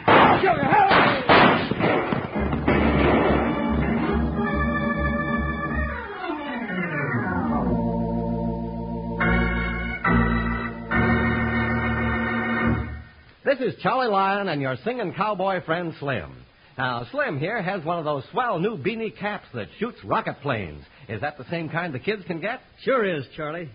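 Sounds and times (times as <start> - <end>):
six-gun gunfire in a shootout: 0.0 - 4.1
speech: 0.4 - 0.8, 13.6 - 23.7
loud dramatic music with sweeping sliding tones: 2.3 - 13.0.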